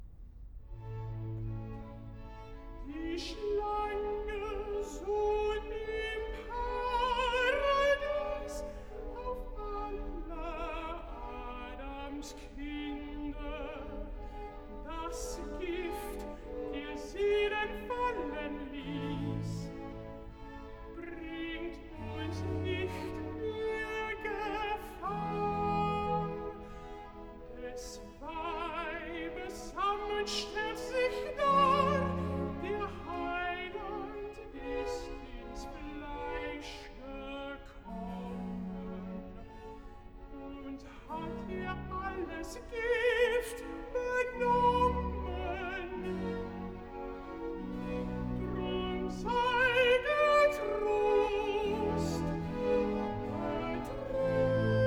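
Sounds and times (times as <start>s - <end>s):
alto singing recitative: 2.8s - 39.2s, 40.4s - 54.8s.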